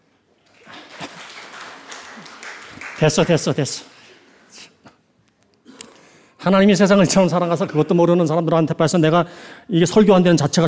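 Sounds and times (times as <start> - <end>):
audience clapping: 0.4 - 4.5
speech: 3.0 - 3.9, 6.5 - 10.6.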